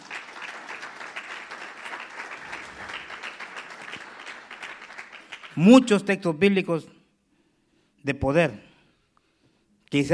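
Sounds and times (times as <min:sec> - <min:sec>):
audience applauding: 0:00.0 - 0:05.8
speech: 0:05.6 - 0:06.9, 0:08.0 - 0:08.7, 0:09.9 - 0:10.1.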